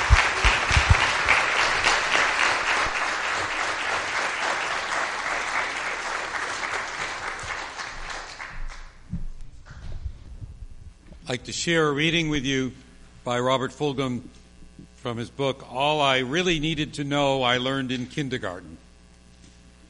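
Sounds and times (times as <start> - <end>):
applause for volunteers: 0.0 - 9.0
speech: 11.3 - 14.4, 15.0 - 18.8.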